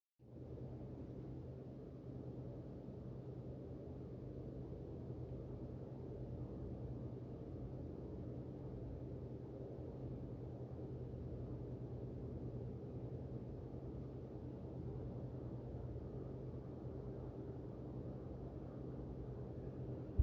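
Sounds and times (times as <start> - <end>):
background noise: 0.2 - 20.2.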